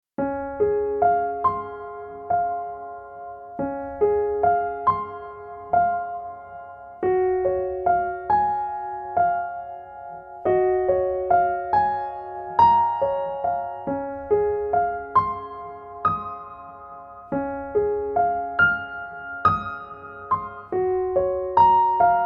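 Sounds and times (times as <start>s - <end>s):
piano: 0.1s - 22.2s.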